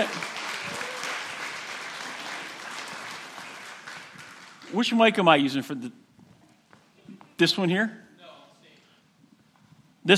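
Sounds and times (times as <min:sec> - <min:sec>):
crowd clapping: 0:00.0 - 0:05.3
speech: 0:04.7 - 0:06.0, 0:07.4 - 0:08.0.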